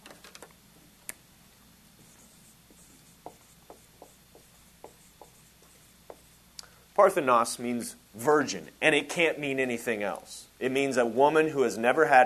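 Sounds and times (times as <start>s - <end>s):
pen handwriting a Greek word: 2.0s - 6.4s
speech: 7.0s - 12.2s.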